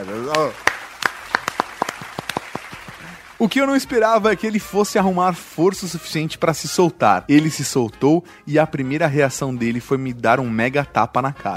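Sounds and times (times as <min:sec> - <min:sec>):
speech: 0:00.0 - 0:00.7, 0:03.4 - 0:11.5
applause: 0:00.0 - 0:04.4.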